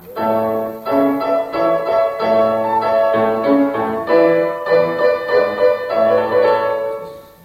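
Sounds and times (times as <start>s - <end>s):
minuet: 0.0s - 7.4s.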